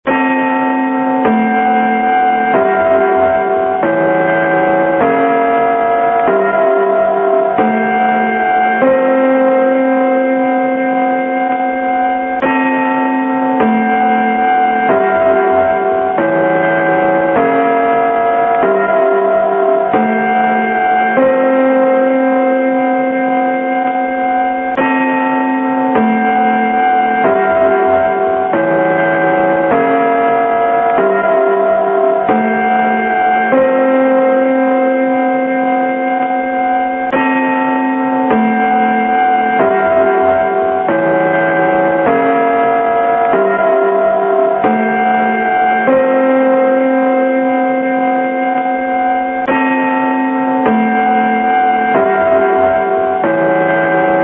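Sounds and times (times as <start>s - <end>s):
gong signal: 0.1s - 54.2s.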